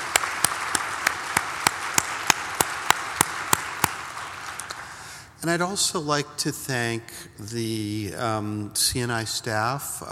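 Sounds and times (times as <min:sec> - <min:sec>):
sharp evenly spaced clap: 0:00.0 - 0:05.1
audience applause: 0:00.0 - 0:05.2
speech: 0:05.4 - 0:10.1.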